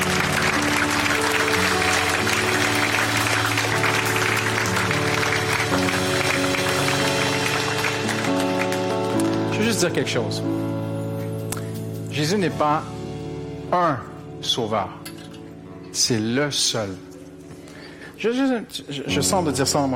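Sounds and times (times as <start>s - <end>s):
audience applauding and cheering: 0.0s - 9.8s
sustained keyboard or organ chords: 0.0s - 17.4s
speech: 9.8s - 10.9s, 12.2s - 13.0s, 13.7s - 15.0s, 16.0s - 17.1s, 18.2s - 19.9s.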